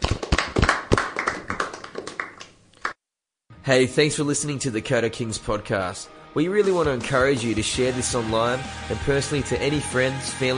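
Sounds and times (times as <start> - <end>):
group clapping: 0.0 - 3.0
speech: 3.7 - 10.5.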